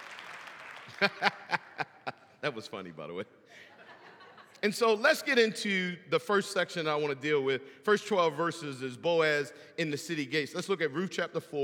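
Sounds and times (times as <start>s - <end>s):
brief audience clapping: 0.0s - 1.9s
laughter: 0.9s - 2.4s, 3.6s - 4.6s
speech: 1.0s - 1.4s, 2.4s - 3.6s, 4.6s - 11.6s.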